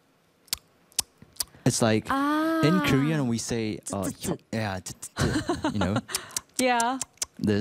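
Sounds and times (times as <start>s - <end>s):
beatbox tongue hi-hat clicks: 0.5s - 1.5s, 6.1s - 7.4s
speech: 1.7s - 7.5s
laughter: 5.0s - 6.4s.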